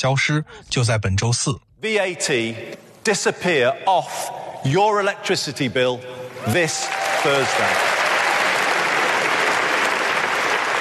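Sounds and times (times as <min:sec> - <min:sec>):
speech: 0:00.0 - 0:07.9
audience applause: 0:06.5 - 0:10.7.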